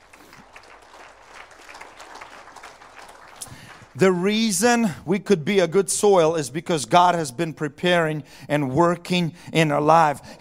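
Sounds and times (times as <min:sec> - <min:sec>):
audience clapping hands: 0:00.0 - 0:04.6
speech: 0:04.0 - 0:10.3.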